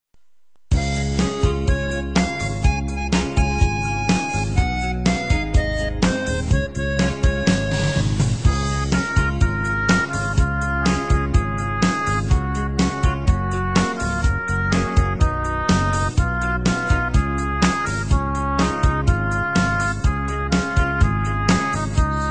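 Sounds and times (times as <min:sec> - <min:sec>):
instrumental music beat: 0:00.7 - 0:22.3.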